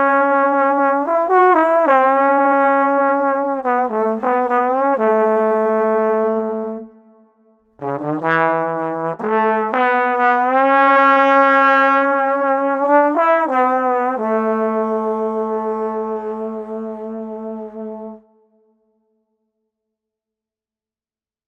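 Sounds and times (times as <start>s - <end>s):
drunken street trombone playing: 0.0s - 6.9s, 7.8s - 18.2s.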